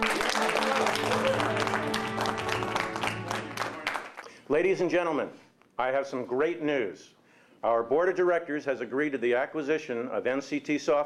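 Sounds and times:
audience at a corporate event applauding to welcome the CEO: 0:00.0 - 0:04.3
speech: 0:04.5 - 0:11.0.

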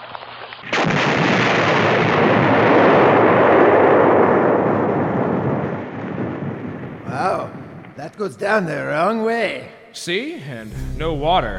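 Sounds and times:
plastic explosives detonating with long dense roar and rumble: 0:00.6 - 0:08.0
speech: 0:08.2 - 0:11.5.

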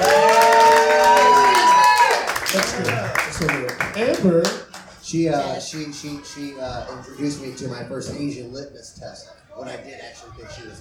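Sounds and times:
crowd whooping: 0:00.0 - 0:03.2
crowd applauding: 0:00.0 - 0:07.0
speech: 0:04.2 - 0:10.7.

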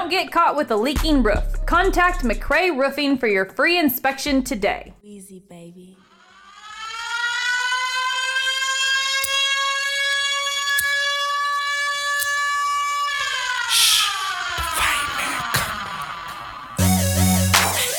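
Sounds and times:
speech: 0:00.1 - 0:06.0
fireman siren music intro: 0:06.0 - 0:14.6, 0:15.6 - 0:17.9.

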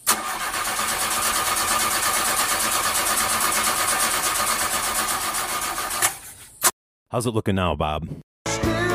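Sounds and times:
go-kart engine being started: 0:00.0 - 0:06.3
speech: 0:07.1 - 0:08.8.

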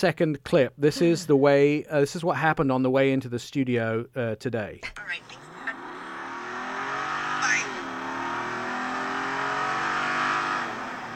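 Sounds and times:
speech: 0:00.0 - 0:05.4
Jeep 392 engine revving: 0:05.2 - 0:11.1.

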